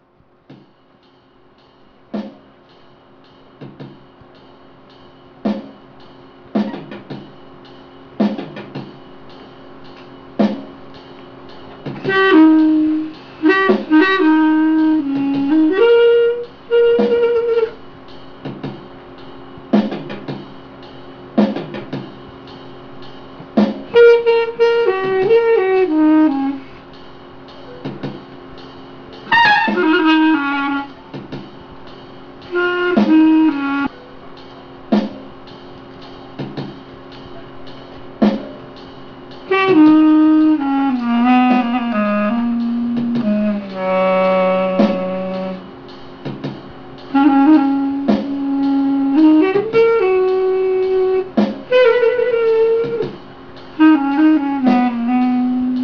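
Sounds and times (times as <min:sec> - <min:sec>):
musical accompaniment: 0:08.2 - 0:55.8
saxophone: 0:11.9 - 0:17.8, 0:23.9 - 0:26.9, 0:29.2 - 0:31.3, 0:32.5 - 0:34.0, 0:39.4 - 0:45.8, 0:47.1 - 0:55.8.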